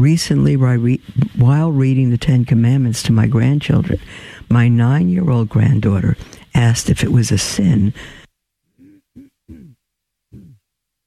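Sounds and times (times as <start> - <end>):
speech: 0.0 - 8.2
person clearing throat: 8.8 - 10.7.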